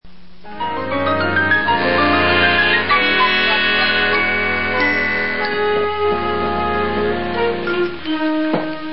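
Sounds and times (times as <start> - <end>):
music: 0.4 - 8.9.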